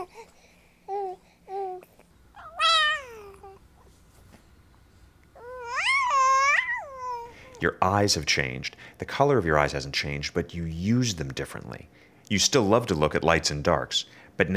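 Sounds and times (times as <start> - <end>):
baby cooing and chirping: 0.0 - 0.3, 0.9 - 3.7, 5.4 - 7.6
speech: 7.6 - 14.5.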